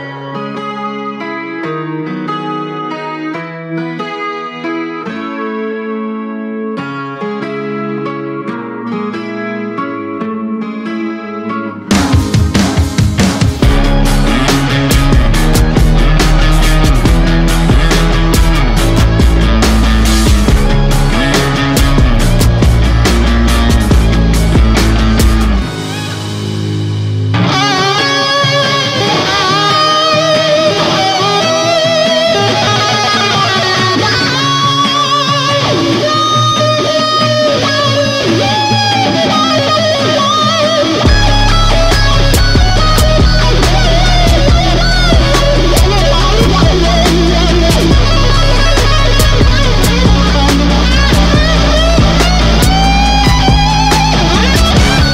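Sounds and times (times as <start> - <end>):
solo guitar: 0.0 - 55.1.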